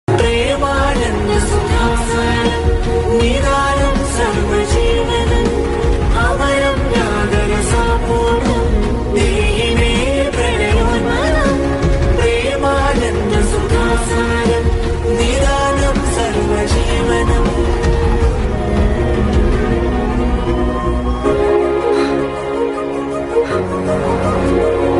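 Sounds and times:
climactic background music: 0.1 - 24.9.

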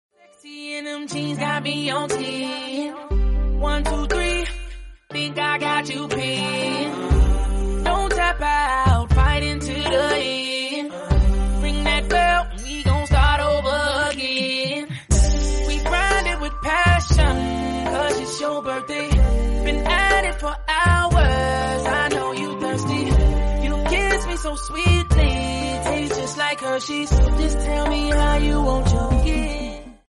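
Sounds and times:
English song: 0.2 - 30.0.

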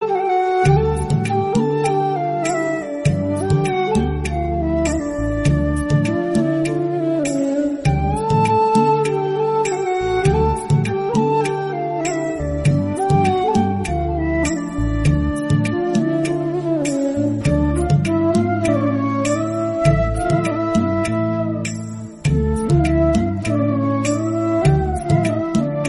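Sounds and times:
flute: 0.0 - 25.8.

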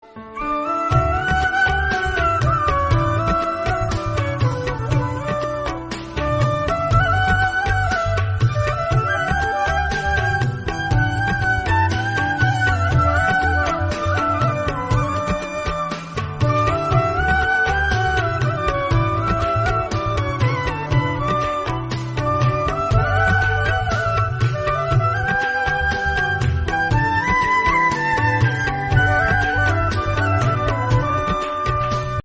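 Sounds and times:
flute instrumental song: 0.0 - 32.2.

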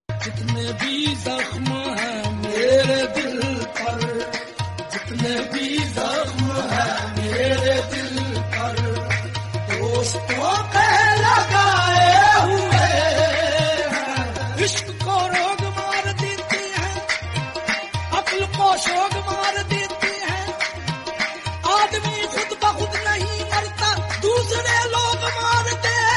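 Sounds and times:
Islamic qawwali singing: 0.2 - 26.1.

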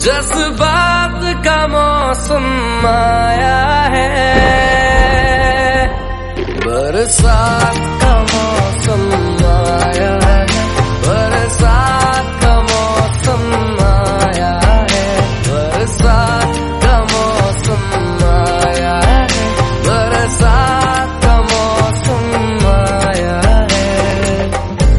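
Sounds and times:
Hindi song: 0.0 - 24.9.

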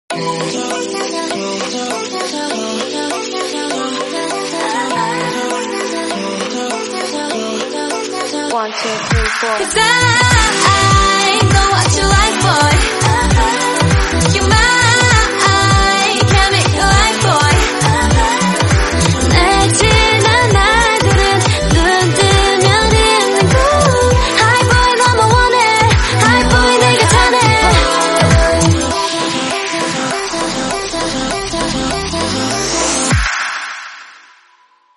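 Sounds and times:
Korean song: 0.1 - 33.4.

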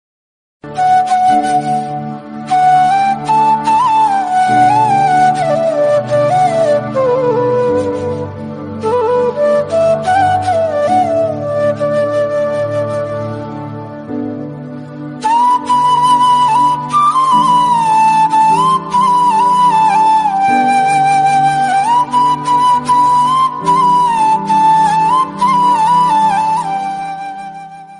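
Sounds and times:
bansuri flute music: 0.6 - 27.9.

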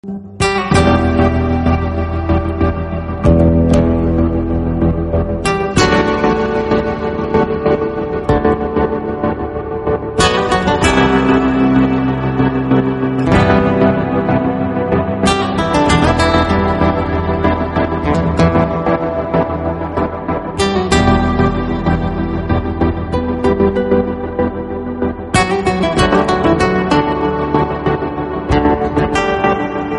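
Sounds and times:
fusion background music: 0.0 - 29.9.

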